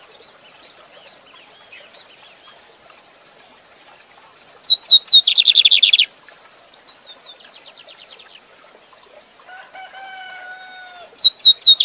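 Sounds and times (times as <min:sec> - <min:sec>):
high-pitched hiss: 0:00.0 - 0:11.8
lined seedeater singing: 0:04.6 - 0:06.1, 0:11.2 - 0:11.8.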